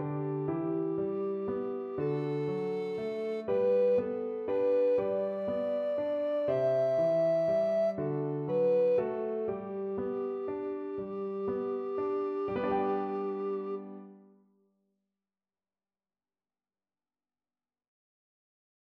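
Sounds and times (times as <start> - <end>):
alto recorder playing a hymn: 0.3 - 14.2.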